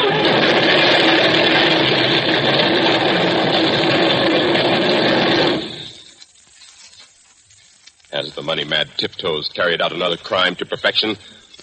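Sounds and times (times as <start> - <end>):
runaway truck engine: 0.0 - 6.2
speech: 8.7 - 11.6.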